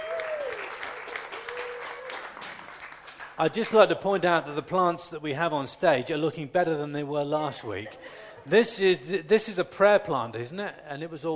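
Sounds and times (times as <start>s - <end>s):
audience applause: 0.0s - 3.7s
speech: 3.4s - 11.3s.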